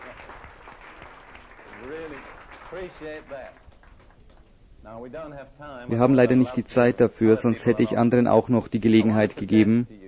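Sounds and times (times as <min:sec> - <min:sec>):
applause: 0:00.0 - 0:04.6
speech: 0:01.8 - 0:03.6, 0:04.8 - 0:10.0.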